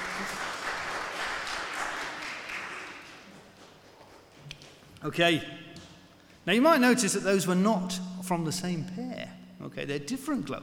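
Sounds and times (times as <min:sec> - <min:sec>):
round of applause: 0:00.0 - 0:03.6
speech: 0:05.0 - 0:05.6, 0:06.4 - 0:10.6.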